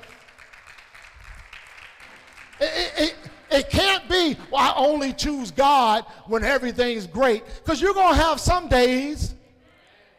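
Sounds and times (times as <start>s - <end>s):
audience clapping hands: 0.0s - 4.3s
speech: 3.0s - 9.4s.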